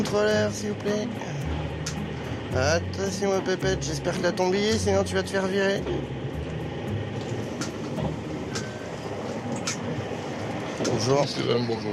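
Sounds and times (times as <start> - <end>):
speech: 0.0 - 6.2, 10.9 - 11.9
moving train heard from between two wagons: 0.0 - 11.9.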